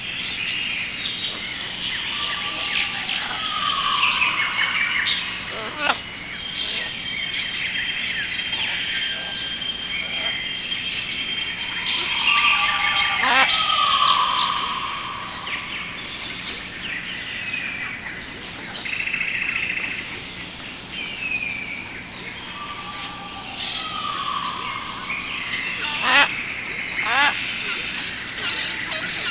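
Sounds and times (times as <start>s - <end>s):
jungle forest ambience: 0.0s - 29.2s.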